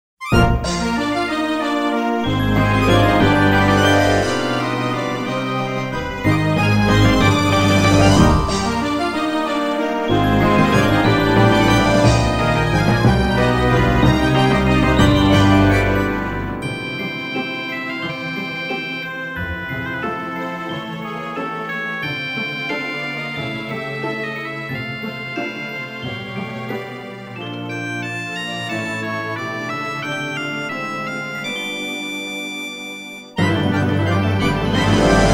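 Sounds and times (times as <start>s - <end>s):
orchestral music: 0.2s - 32.3s, 33.2s - 35.3s.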